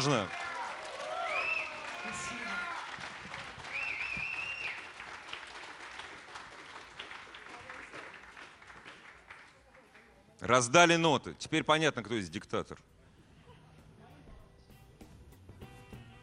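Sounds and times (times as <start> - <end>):
speech: 0.0 - 0.4, 10.4 - 12.9
audience cheering: 0.0 - 5.7
audience applause: 0.0 - 10.2.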